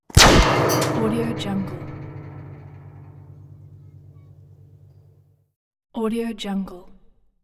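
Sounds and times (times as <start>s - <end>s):
bullet impact on metal: 0.1s - 4.9s.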